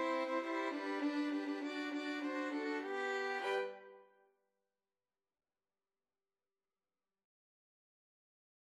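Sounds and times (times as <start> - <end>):
violin trio: 0.0 - 3.9.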